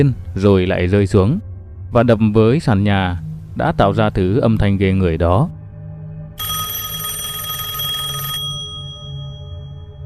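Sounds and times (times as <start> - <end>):
speech: 0.0 - 5.6
telephone ringing: 6.4 - 10.0.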